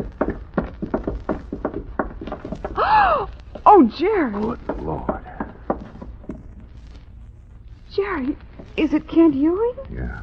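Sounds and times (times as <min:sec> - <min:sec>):
hollow footstep-like thumps: 0:00.0 - 0:09.6
speech: 0:03.7 - 0:05.2, 0:08.1 - 0:10.2.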